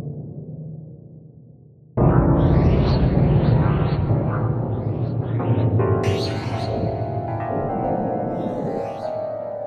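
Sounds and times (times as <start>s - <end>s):
Padshop 2 synth pad: 2.0s - 9.6s.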